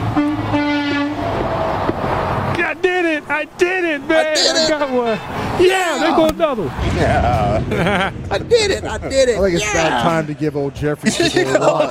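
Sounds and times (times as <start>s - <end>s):
truck air horn blasts: 0.0s - 1.3s
roar of heavy traffic: 0.0s - 11.8s
speech: 3.3s - 11.8s
laughter: 4.2s - 4.9s, 7.3s - 9.9s, 10.9s - 11.8s.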